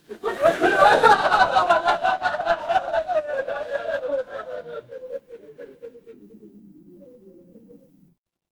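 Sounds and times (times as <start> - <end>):
crowd laughing: 0.0 - 6.1.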